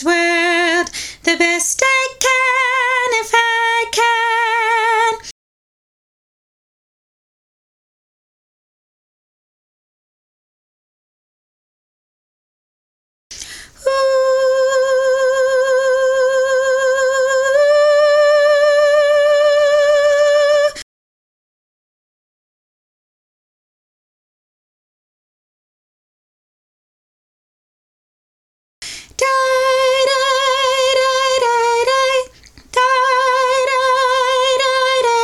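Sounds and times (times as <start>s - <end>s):
soprano singing vocal drill: 0.0s - 5.3s, 13.3s - 20.8s, 28.8s - 35.2s.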